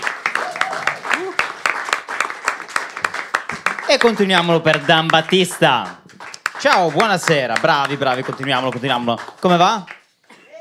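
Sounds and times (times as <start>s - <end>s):
audience applause: 0.0s - 10.1s
voiced whoop from the crowd: 0.4s - 1.5s
speech: 3.9s - 6.0s, 6.6s - 9.9s.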